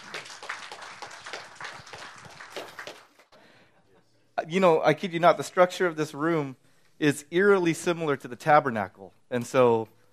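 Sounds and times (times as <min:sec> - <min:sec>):
audience applause welcoming a speaker to the stage: 0:00.0 - 0:03.4
speech: 0:04.5 - 0:10.0.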